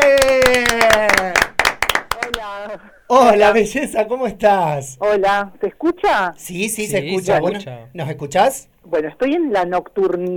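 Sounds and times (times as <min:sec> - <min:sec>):
applause: 0:00.0 - 0:02.5
speech: 0:02.8 - 0:10.3.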